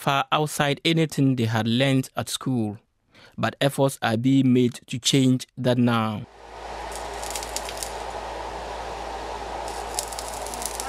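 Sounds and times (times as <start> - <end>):
speech: 0.0 - 6.7
low constant hum: 6.3 - 10.8
welding crackling hiss at a technical training institute in Takoradi: 6.3 - 10.8.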